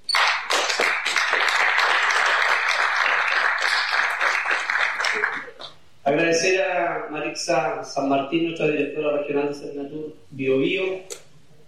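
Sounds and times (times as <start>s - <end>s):
crowd applauding: 0.0s - 5.8s
speech: 6.1s - 11.2s.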